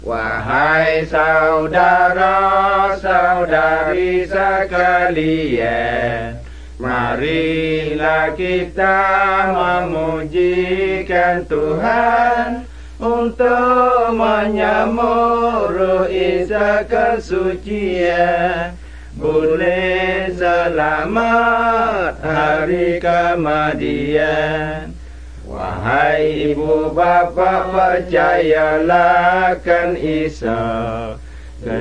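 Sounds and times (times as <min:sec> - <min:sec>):
Malay Pattani songs: 0:00.0 - 0:31.8.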